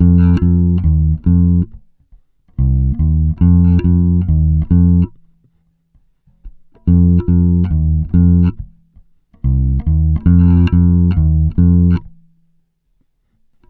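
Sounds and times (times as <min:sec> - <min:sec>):
bass groove: 0:00.0 - 0:01.8, 0:02.6 - 0:05.2, 0:06.4 - 0:08.8, 0:09.4 - 0:12.2.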